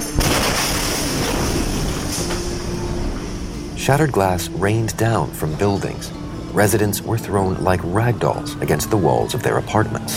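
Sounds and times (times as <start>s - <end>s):
ammonium nitrate explosion at a port: 0.2s - 2.8s
speech: 3.9s - 10.1s.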